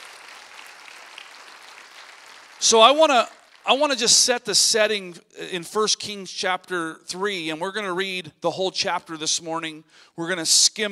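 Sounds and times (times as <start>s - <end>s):
church congregation applauding during a worship service: 0.0s - 4.1s
speech: 2.6s - 10.9s.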